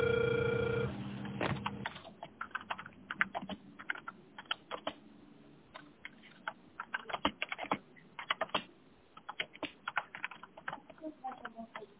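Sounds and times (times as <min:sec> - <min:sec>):
telephone ringing tone while dialing: 0:00.0 - 0:00.9
keyboard typing clicks: 0:01.8 - 0:05.0, 0:05.7 - 0:11.9.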